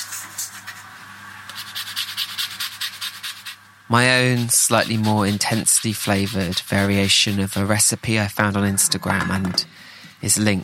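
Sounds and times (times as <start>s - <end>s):
blood orange drizzle cake being made: 1.4s - 9.4s
speech: 3.9s - 10.6s.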